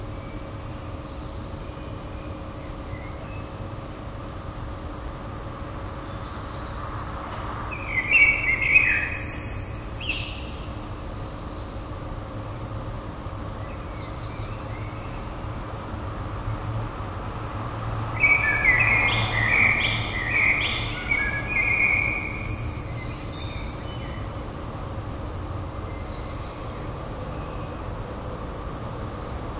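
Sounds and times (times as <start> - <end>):
low rumble and hiss: 0.0 - 29.5
common blackbird singing: 0.1 - 3.6, 6.0 - 6.9, 7.7 - 11.8, 13.6 - 15.5, 18.1 - 24.4, 25.8 - 27.8.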